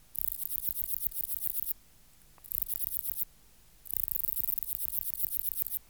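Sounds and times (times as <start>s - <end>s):
black-margined bush-cricket song: 0.2s - 1.7s, 2.5s - 3.2s, 3.9s - 5.8s.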